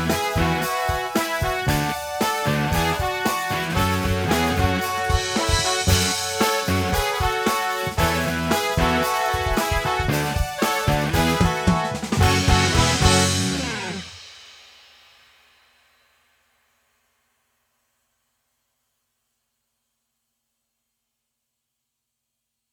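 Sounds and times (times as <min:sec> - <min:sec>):
live band playing: 0:00.0 - 0:14.2.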